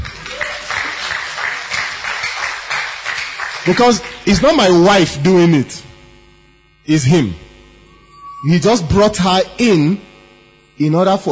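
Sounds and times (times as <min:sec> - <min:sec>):
rhythmic crowd clapping: 0:00.0 - 0:05.2
speech: 0:03.6 - 0:05.8, 0:06.9 - 0:07.5, 0:08.4 - 0:10.1, 0:10.8 - 0:11.3.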